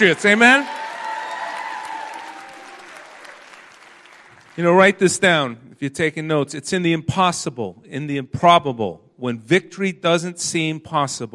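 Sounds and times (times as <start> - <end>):
speech: 0.0 - 0.8, 4.6 - 11.3
audience applauding and cheering: 0.0 - 4.8.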